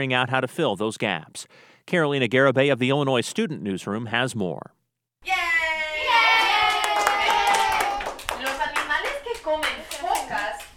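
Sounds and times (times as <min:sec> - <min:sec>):
speech: 0:00.0 - 0:05.5
schoolchildren cheering in class: 0:05.2 - 0:08.4
excited young voices: 0:05.2 - 0:10.7
schoolchildren clapping in class: 0:06.2 - 0:10.7.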